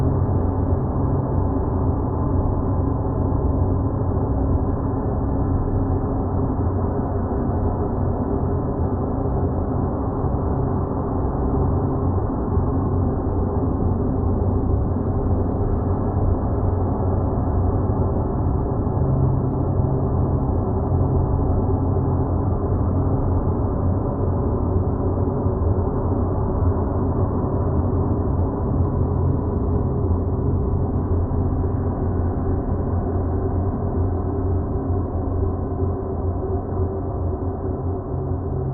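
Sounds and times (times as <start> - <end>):
dark airy sound design drone: 0.0 - 38.7.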